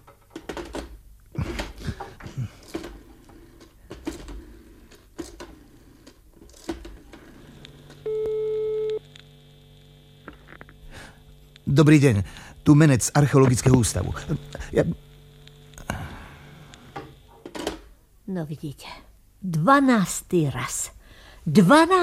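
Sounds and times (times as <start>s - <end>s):
clicks and crackling on a telephone line: 0.0s - 16.0s, 16.6s - 17.8s
faint hum: 0.8s - 22.0s
speech: 11.7s - 15.0s, 18.4s - 22.0s.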